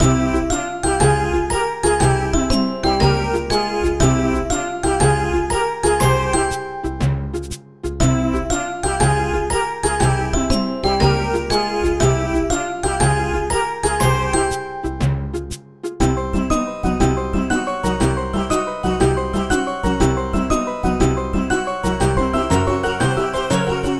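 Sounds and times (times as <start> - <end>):
lobby background music: 0.0 - 23.9.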